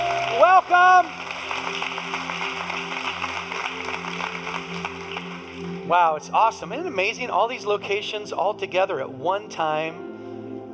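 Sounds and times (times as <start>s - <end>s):
congregation applauding at a worship service: 0.0s - 5.9s
sustained musical tones: 0.0s - 10.7s
speech: 0.4s - 2.2s, 5.9s - 10.1s.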